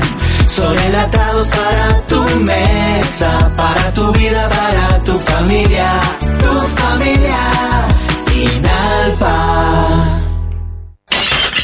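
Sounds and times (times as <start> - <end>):
speech: 0.5 - 10.2
ceramic office mug shattering: 11.1 - 11.6.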